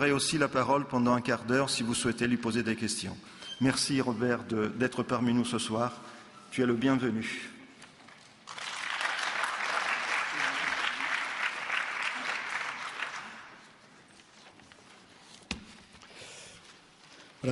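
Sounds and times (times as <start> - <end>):
speech: 0.0 - 7.6
audience applause: 8.5 - 13.6.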